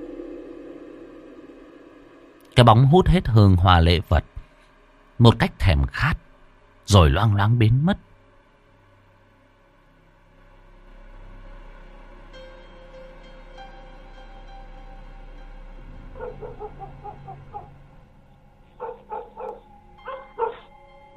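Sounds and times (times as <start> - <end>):
speech: 2.6 - 4.3, 5.2 - 6.2, 6.9 - 8.1
dog barking in the night: 16.2 - 17.8, 18.7 - 20.7.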